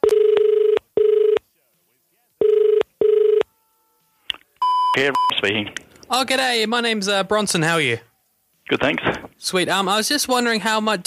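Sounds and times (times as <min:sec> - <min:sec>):
telephone ringing tone: 0:00.0 - 0:01.4, 0:02.4 - 0:03.6
speech: 0:05.0 - 0:08.1, 0:08.7 - 0:11.0.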